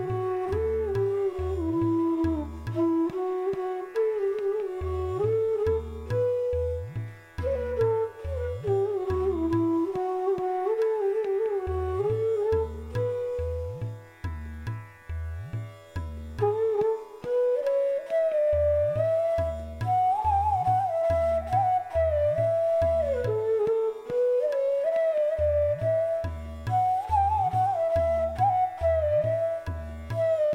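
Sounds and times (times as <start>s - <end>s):
flute playing a raga: 0.0s - 30.5s.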